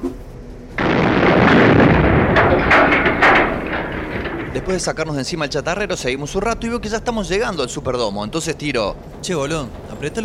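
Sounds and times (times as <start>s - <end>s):
dynamite explosion: 0.8s - 5.4s
speech: 4.7s - 10.2s.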